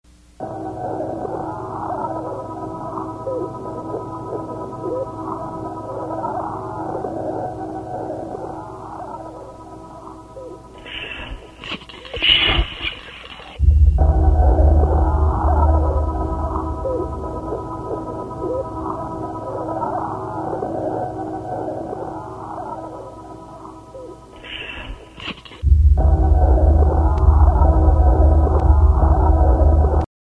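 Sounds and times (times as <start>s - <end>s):
drone: 0.4s - 30.1s.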